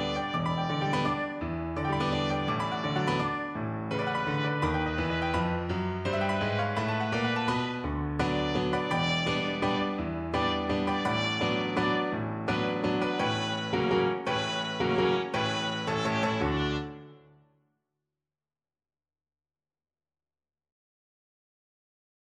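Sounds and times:
trumpet playing a waltz: 0.0 - 17.2.

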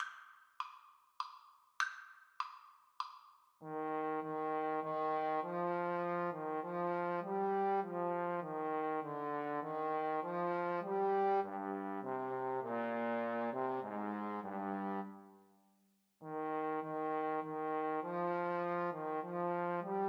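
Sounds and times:
trombone duet: 3.6 - 15.2, 16.2 - 20.0.

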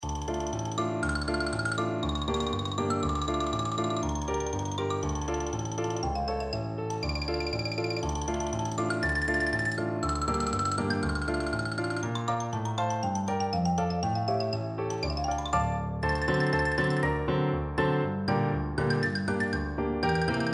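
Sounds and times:
xylophone: 0.0 - 17.4, 18.3 - 20.5.

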